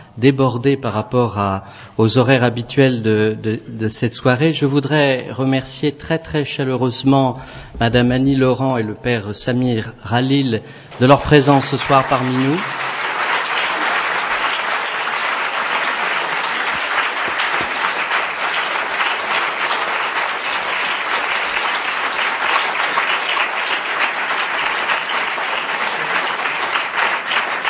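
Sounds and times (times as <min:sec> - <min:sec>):
speech: 0:00.2 - 0:12.9
crowd applause: 0:10.9 - 0:27.6.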